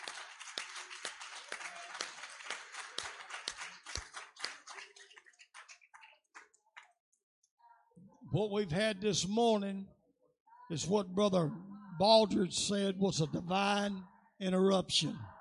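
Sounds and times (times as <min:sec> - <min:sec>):
audience hand clapping in praise: 0:00.0 - 0:07.0
speech: 0:08.3 - 0:10.0, 0:10.7 - 0:15.3.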